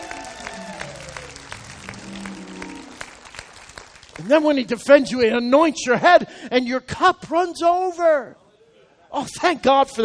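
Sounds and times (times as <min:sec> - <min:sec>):
audience clapping: 0:00.0 - 0:05.1
speech: 0:04.2 - 0:08.4, 0:09.1 - 0:10.0.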